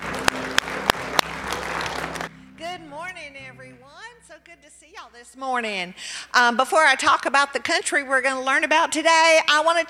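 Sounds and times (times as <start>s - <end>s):
audience applause: 0.0s - 2.3s
speech: 4.4s - 9.8s.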